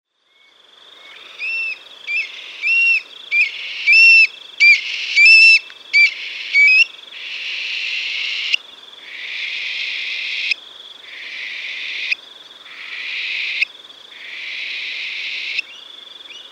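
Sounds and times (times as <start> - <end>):
Eurasian stone-curlew calls: 1.4 - 7.4.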